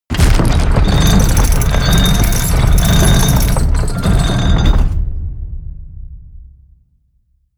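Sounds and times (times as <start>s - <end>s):
portcullis opening: 0.4s - 5.0s.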